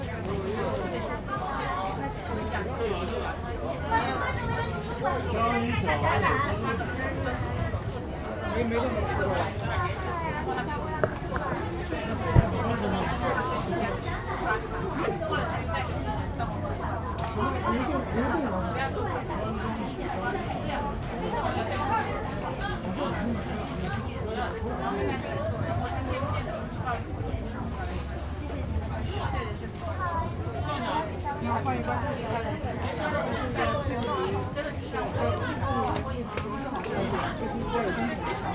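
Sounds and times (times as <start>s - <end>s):
outdoor crowd murmur: 0.0s - 38.5s
speech: 8.6s - 9.9s
faint footsteps: 10.8s - 12.9s.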